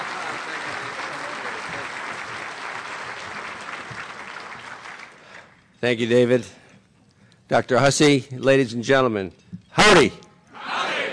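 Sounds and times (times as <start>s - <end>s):
audience applause welcoming the SEC commissioner at a Bryan–College Station event: 0.0s - 5.6s
speech: 5.8s - 6.6s, 7.5s - 10.2s.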